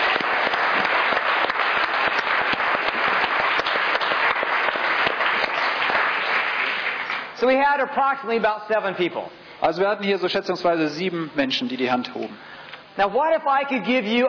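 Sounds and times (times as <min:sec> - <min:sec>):
audience applause: 0:00.0 - 0:07.4
speech: 0:07.4 - 0:14.2.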